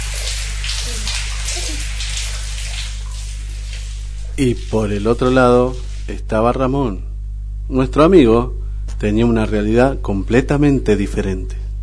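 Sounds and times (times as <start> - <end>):
shower water running: 0.0 - 6.2
speech: 4.4 - 7.1, 7.7 - 11.6.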